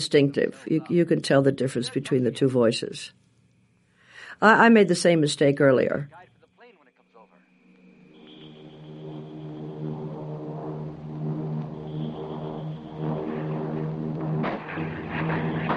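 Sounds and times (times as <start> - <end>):
speech: 0.0 - 3.2, 4.3 - 6.3
airplane engine flying overhead: 6.9 - 15.7.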